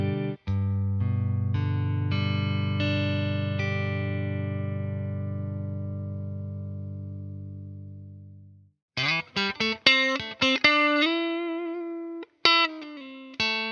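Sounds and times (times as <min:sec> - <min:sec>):
clean Telecaster electric guitar on bridge pickup: 0:00.0 - 0:13.7.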